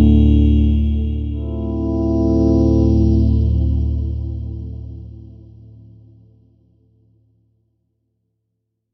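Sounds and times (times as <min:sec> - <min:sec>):
choir singing: 0:00.0 - 0:05.0.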